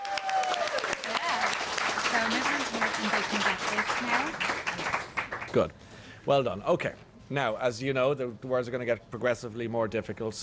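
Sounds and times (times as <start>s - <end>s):
audience applause: 0.0s - 5.6s
speech: 2.2s - 10.4s.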